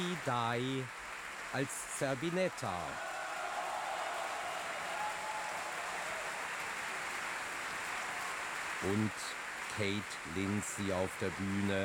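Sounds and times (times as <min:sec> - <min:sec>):
opera audience applause: 0:00.0 - 0:11.8
speech: 0:00.2 - 0:03.1, 0:08.8 - 0:11.8
opera audience cheering: 0:02.1 - 0:09.1.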